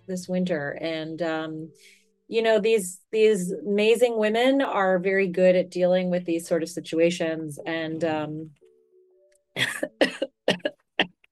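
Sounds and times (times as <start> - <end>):
speech: 0.1 - 8.6
coughing after eating spicy soup: 9.6 - 11.3.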